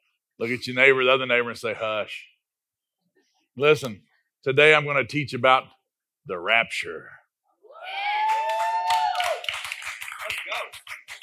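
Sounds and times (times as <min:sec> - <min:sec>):
speech: 0:00.4 - 0:02.3, 0:03.6 - 0:07.2
audience cheering and clapping: 0:07.7 - 0:11.2.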